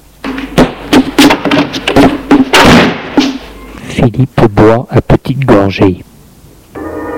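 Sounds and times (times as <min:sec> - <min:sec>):
door slamming shut: 0:00.6 - 0:03.4
speech: 0:04.0 - 0:06.1.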